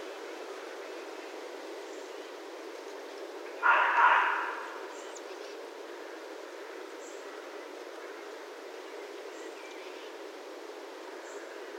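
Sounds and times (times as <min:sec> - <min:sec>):
faint background hiss: 0:00.0 - 0:11.7
red fox bark: 0:03.6 - 0:04.9.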